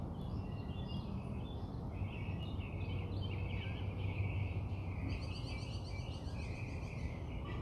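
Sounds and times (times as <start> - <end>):
bird song: 0.0 - 7.6.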